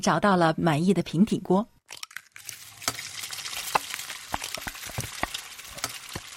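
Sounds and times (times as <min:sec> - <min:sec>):
speech: 0:00.0 - 0:02.0
whisking eggs quickly: 0:02.2 - 0:06.3.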